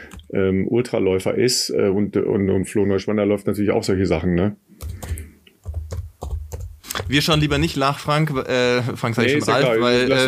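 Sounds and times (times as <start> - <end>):
speech: 0.3 - 4.9, 7.1 - 10.2
computer keyboard typing: 4.8 - 7.8.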